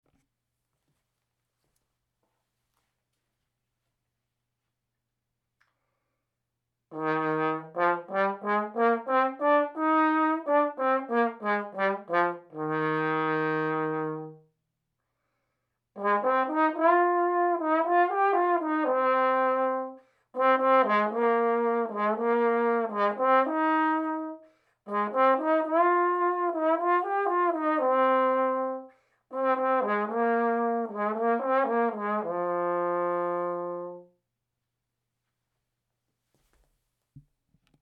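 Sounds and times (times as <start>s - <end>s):
trombone: 6.9s - 14.4s, 16.0s - 34.1s.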